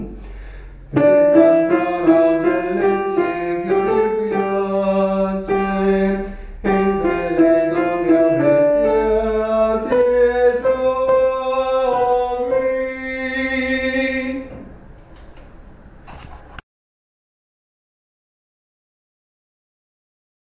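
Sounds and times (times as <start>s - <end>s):
mezzo-soprano singing: 1.0s - 14.6s.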